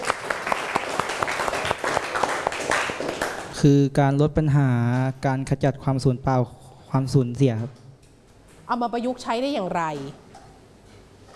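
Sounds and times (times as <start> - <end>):
classroom applause: 0.0 - 3.6
speech: 3.6 - 7.8, 8.7 - 10.2.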